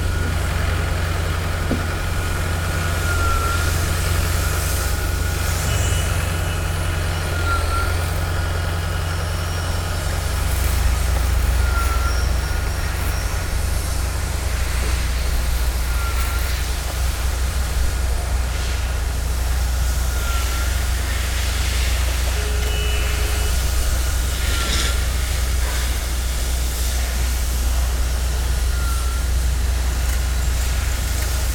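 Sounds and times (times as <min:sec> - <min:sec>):
construction and repair noise: 0:00.0 - 0:31.5.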